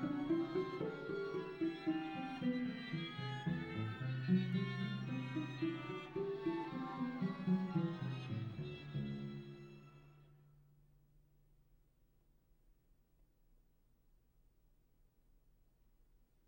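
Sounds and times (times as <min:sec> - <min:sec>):
string quartet: 0:00.0 - 0:10.4.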